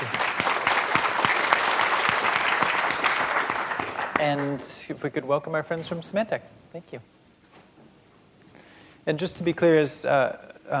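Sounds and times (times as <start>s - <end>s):
audience applause thanking the Content Watch Net Nanny presenters: 0.0s - 4.6s
speech: 4.2s - 7.2s, 9.0s - 10.7s.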